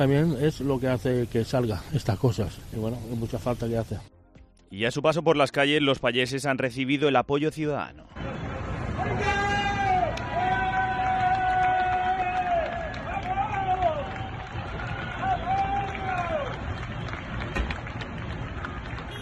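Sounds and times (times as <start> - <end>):
speech: 0.0 - 4.1, 4.7 - 8.3
street crowd applauding: 8.3 - 19.2.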